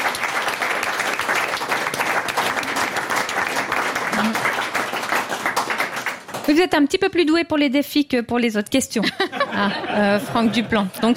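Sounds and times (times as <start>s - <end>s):
audience applause: 0.0s - 6.6s
speech: 6.5s - 11.1s
laughter: 9.0s - 11.1s.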